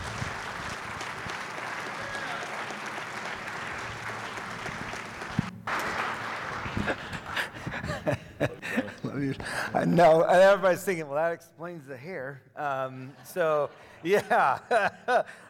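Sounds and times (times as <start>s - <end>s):
crowd applause at a church service welcoming a guest speaker: 0.0s - 7.8s
laughter: 5.8s - 9.6s, 12.7s - 15.4s
speech: 9.2s - 15.4s.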